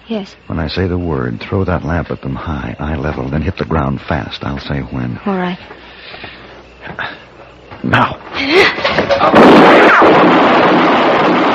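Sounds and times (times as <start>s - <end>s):
speech: 0.1s - 7.2s, 7.8s - 11.4s
gunshot in a staged drama scene: 9.1s - 11.5s.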